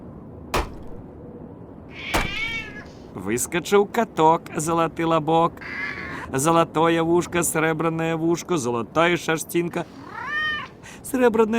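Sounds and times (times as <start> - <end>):
knocking: 0.6 - 1.0, 2.2 - 2.9
speech: 3.2 - 10.0, 11.1 - 11.5.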